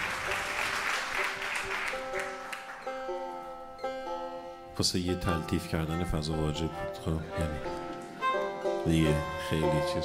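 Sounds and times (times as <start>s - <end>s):
audience applause for a guest: 0.0s - 3.1s
sustained tonal musical notes: 0.3s - 10.0s
speech: 4.8s - 7.8s, 8.8s - 10.0s.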